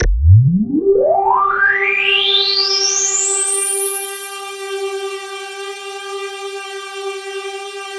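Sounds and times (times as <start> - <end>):
KORG DW8000 vintage synthesizer keyboard: 0.0 - 4.9.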